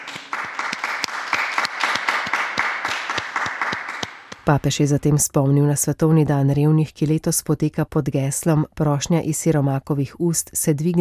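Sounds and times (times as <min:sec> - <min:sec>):
crowd applauding: 0:00.0 - 0:04.5
speech: 0:04.5 - 0:10.9.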